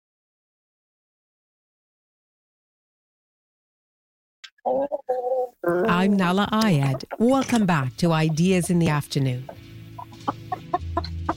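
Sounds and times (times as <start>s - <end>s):
chicken clucking: 4.5s - 11.3s
speech: 4.6s - 9.6s.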